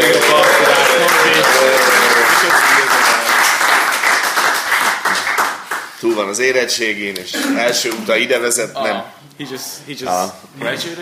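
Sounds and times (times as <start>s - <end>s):
applause from a group welcoming a new arrival: 0.0s - 6.0s
speech: 6.0s - 11.0s.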